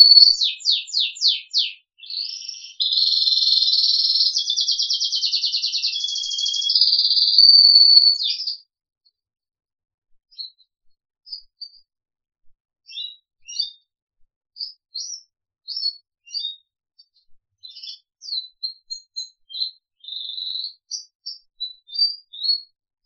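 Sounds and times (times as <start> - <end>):
crested canary singing: 0.0 - 8.7, 12.9 - 13.8, 14.6 - 16.7, 17.6 - 23.0.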